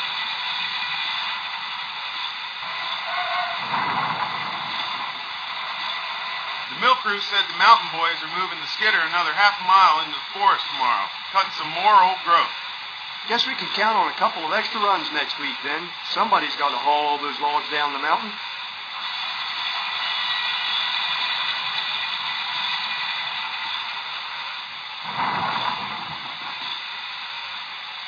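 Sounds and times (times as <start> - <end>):
Shay trains: 0.0 - 28.0.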